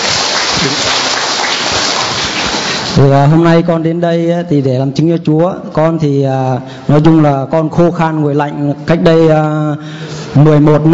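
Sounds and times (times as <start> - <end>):
applause: 0.0 - 3.0
speech: 0.6 - 0.9, 3.0 - 10.9.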